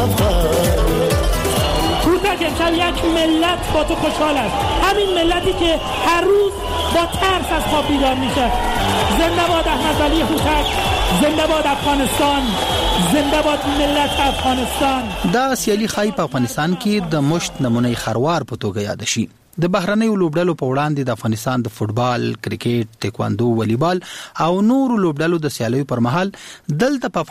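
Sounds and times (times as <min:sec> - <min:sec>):
Afghan spectators chanting at a fighting bout: 0:00.7 - 0:13.0
speech: 0:02.4 - 0:27.3.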